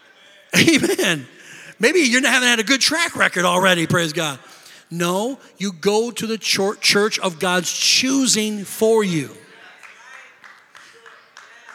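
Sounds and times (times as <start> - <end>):
laughter: 0.6 - 3.6
speech: 0.7 - 9.4
scattered hand claps: 9.8 - 11.7.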